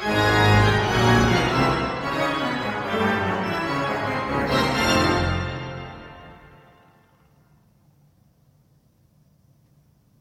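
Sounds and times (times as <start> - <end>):
barrel organ playing: 0.0 - 6.6.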